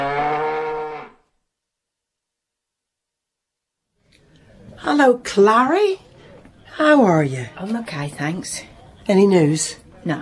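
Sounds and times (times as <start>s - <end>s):
cow mooing before calving: 0.0s - 1.2s
speech: 4.9s - 6.1s, 6.8s - 10.1s.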